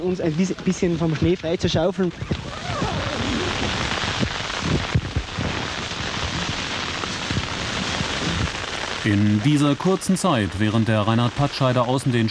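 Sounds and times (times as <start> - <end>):
speech: 0.0 - 2.8, 9.0 - 12.3
near-hurricane-strength storm wind roaring in the snow: 2.1 - 10.8.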